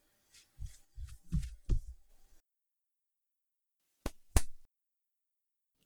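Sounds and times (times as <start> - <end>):
binaural ear cleaning ASMR sounds: 0.4 - 2.4, 4.1 - 4.6.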